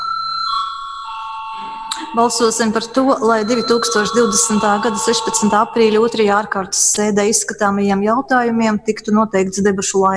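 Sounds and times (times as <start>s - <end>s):
parliamentary voting bell ringing: 0.0s - 7.0s
speech: 2.1s - 10.1s.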